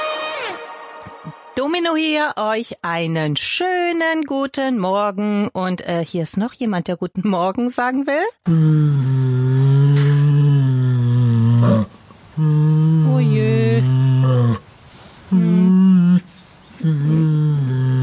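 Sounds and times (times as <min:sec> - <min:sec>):
speech: 0:01.6 - 0:09.1
Asian black bear humming and growling: 0:08.4 - 0:14.6, 0:15.3 - 0:18.0.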